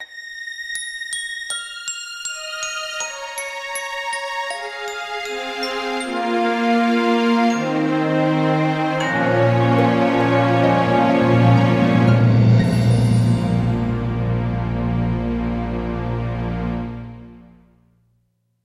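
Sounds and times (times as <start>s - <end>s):
game over background music: 3.6s - 17.7s.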